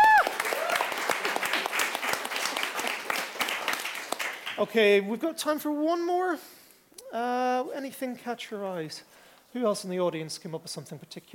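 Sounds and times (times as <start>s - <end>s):
audience applause: 0.0s - 4.6s
speech: 4.6s - 11.3s.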